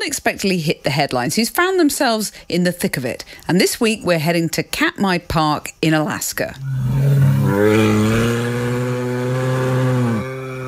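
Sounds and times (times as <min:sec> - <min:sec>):
speech: 0:00.0 - 0:08.2
brown bear growling: 0:06.6 - 0:10.6.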